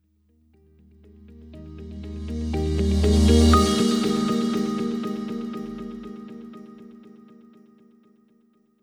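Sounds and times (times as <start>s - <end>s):
corporate transition music: 1.5s - 7.0s.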